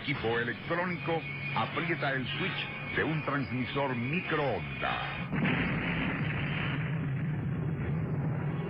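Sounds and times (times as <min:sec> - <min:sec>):
speech: 0:00.1 - 0:05.7
green Oldsmobile exploding: 0:05.2 - 0:08.6.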